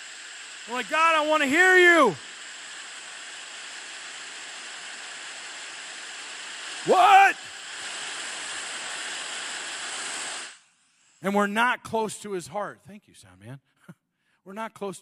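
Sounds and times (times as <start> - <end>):
radio static: 0.6 - 2.2
speech: 0.7 - 2.3, 6.8 - 7.4, 11.2 - 15.0.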